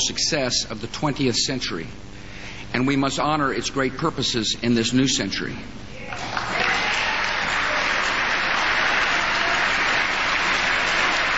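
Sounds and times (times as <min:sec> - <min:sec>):
speech: 0:00.0 - 0:02.1, 0:02.7 - 0:06.3
audience applause: 0:06.1 - 0:11.3.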